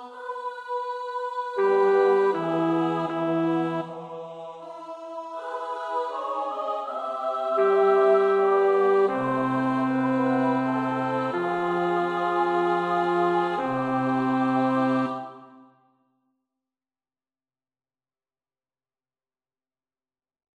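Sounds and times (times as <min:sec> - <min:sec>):
second bass choir part practice singing: 0:00.0 - 0:15.6.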